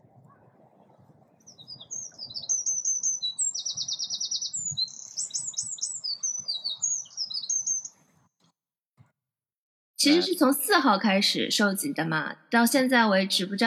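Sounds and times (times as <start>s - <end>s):
birdsong recorded from a balcony: 0.3s - 8.1s
speech: 10.0s - 13.6s.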